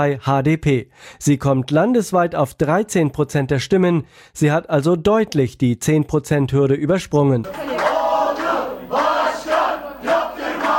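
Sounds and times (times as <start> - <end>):
speech: 0.0 - 7.9
HDP party supporters cheering in rhythmic chant: 7.5 - 10.7.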